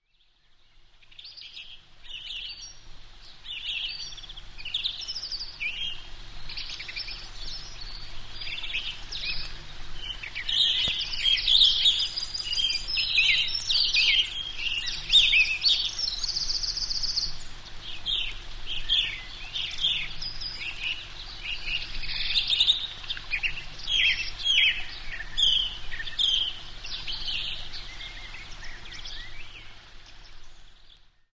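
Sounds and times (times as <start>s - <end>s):
birds: 0.0s - 31.3s.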